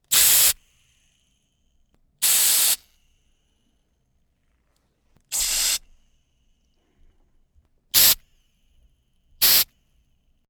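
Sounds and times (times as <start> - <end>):
spray: 0.1 - 0.6, 2.2 - 2.9, 5.3 - 5.9, 8.0 - 8.2, 9.4 - 9.7.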